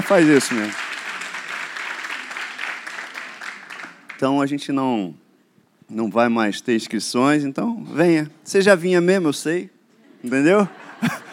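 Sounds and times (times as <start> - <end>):
audience clapping: 0.0 - 4.3
speech: 0.1 - 0.9, 4.2 - 5.2, 5.9 - 11.2
laughter: 10.0 - 11.3.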